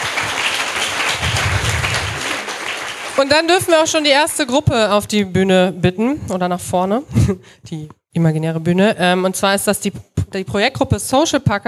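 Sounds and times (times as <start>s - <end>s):
audience applause: 0.0s - 3.6s
speech: 3.2s - 11.6s.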